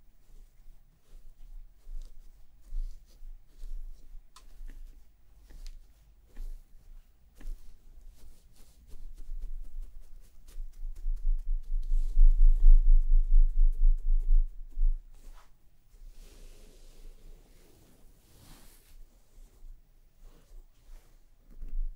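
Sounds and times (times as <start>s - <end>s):
brush working through hair: 0.0s - 21.9s
fingers massaging a scalp: 0.0s - 21.9s
low rumble: 10.8s - 15.3s.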